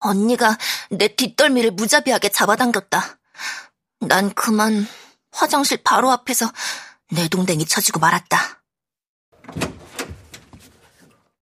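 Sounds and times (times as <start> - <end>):
speech: 0.0 - 8.6, 9.5 - 9.8
bathroom door slamming shut: 9.4 - 10.9.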